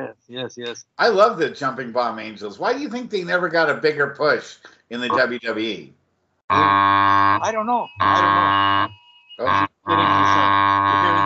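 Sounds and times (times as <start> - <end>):
speech: 0.1 - 11.2
phone vibrating with an emergency weather alert: 6.5 - 11.2.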